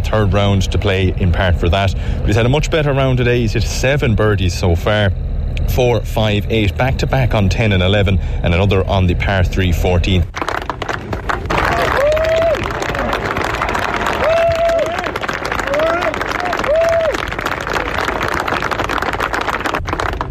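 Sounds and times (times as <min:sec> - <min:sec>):
speech: 0:00.1 - 0:10.5
golf crowd applause: 0:10.3 - 0:20.2.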